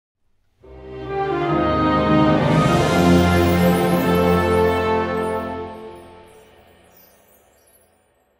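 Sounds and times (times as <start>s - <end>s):
fanfare: 0.6s - 6.8s.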